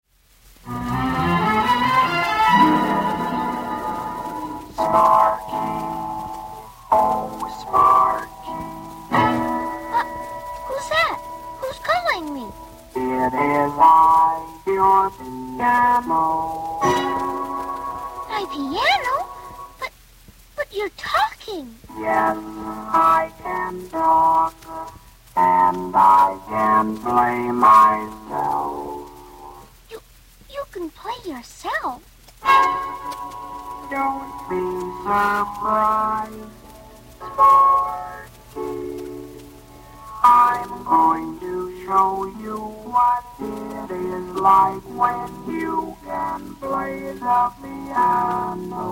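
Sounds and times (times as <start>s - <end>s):
piano: 0.0s - 20.6s, 21.7s - 30.6s, 32.0s - 48.9s.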